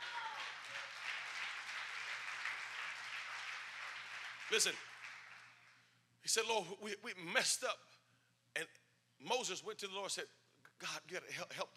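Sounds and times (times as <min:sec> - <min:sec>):
people clapping: 0:00.0 - 0:05.9
speech: 0:04.5 - 0:05.0, 0:06.2 - 0:08.0, 0:08.6 - 0:11.7.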